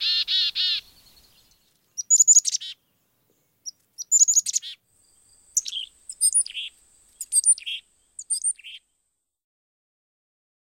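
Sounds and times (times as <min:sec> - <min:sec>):
Black-capped Chickadee calling: 0:00.0 - 0:02.8, 0:03.6 - 0:08.9.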